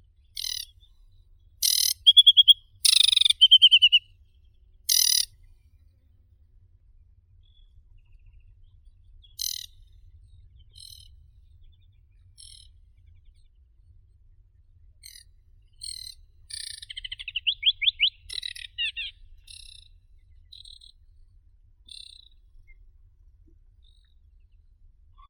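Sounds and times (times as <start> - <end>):
Acrocephalus paludicola aquatic warbler singing: 0.4 - 0.7, 1.6 - 4.0, 4.9 - 5.3, 15.8 - 19.8.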